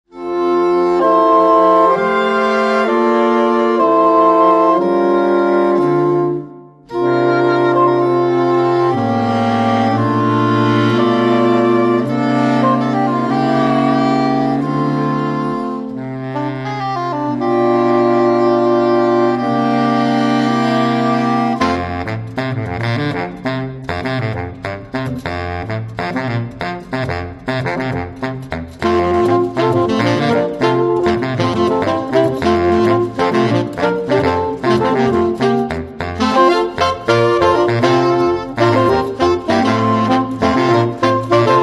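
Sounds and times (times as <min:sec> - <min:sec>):
saxophone: 0:00.1 - 0:41.6.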